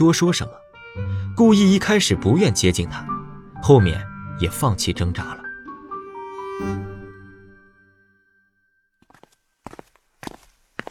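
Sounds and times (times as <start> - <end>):
speech: 0.0 - 5.4, 6.6 - 6.8
footsteps climbing long concrete stairs out of a basement: 9.0 - 10.8.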